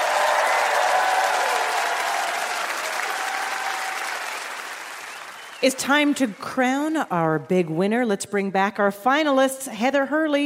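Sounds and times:
studio audience applause: 0:00.0 - 0:06.8
speech: 0:05.6 - 0:10.4.

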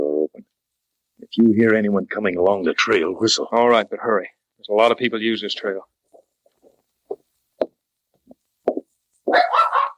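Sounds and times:
speech: 0:01.3 - 0:05.9
small dog yapping and barking: 0:09.3 - 0:09.9.

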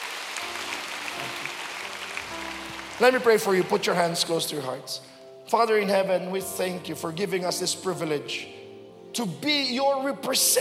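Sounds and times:
church congregation clapping during a service: 0:00.0 - 0:04.7
speech: 0:03.0 - 0:08.6, 0:09.2 - 0:10.5.

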